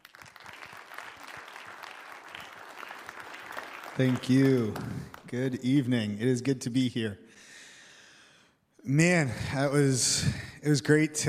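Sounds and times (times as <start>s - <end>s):
church audience clapping to welcome guest speakers: 0.0s - 5.8s
speech: 4.0s - 7.5s, 8.8s - 11.2s.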